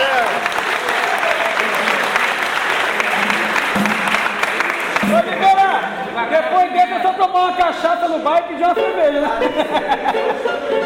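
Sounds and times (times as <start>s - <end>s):
audience applause: 0.0s - 5.7s
speech: 6.3s - 10.8s
laughter: 9.0s - 10.8s.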